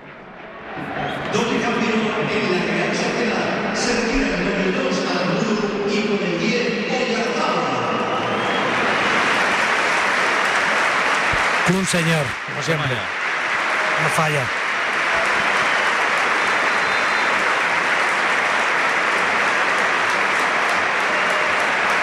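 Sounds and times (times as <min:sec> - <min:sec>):
stadium crowd applauding departing player: 0:00.0 - 0:04.0, 0:08.0 - 0:22.0
speech: 0:01.3 - 0:07.3, 0:11.7 - 0:13.2, 0:14.0 - 0:14.6
crowd shouts: 0:08.0 - 0:22.0.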